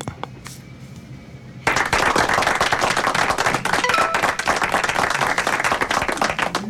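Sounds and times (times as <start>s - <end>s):
audience clapping hands: 1.6s - 6.6s.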